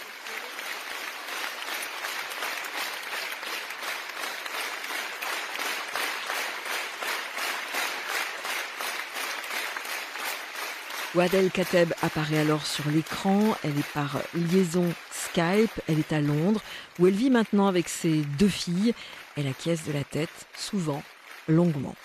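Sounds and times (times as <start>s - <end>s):
ovation of 1500 people applauding in a hall: 0.0s - 22.0s
speech: 11.1s - 22.0s.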